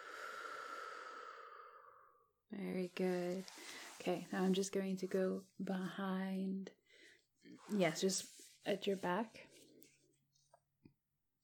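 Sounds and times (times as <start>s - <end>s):
slow deep breathing during a guided breathing exercise: 0.0s - 2.3s
speech: 2.6s - 9.6s.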